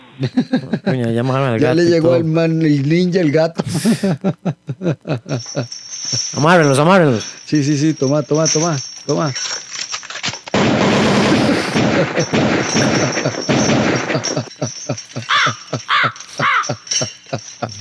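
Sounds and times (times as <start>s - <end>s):
laughter: 0.2s - 1.1s, 3.6s - 5.7s, 11.8s - 17.8s
speech: 0.2s - 9.6s, 12.0s - 17.2s
rapid gunfire sound effect: 10.5s - 14.4s
crows cawing: 15.3s - 16.8s.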